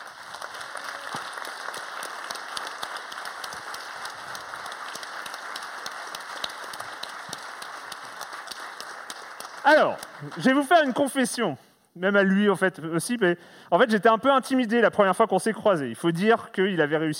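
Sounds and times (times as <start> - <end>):
audience applause welcoming a guest: 0.0 - 11.0
speech: 9.7 - 17.1.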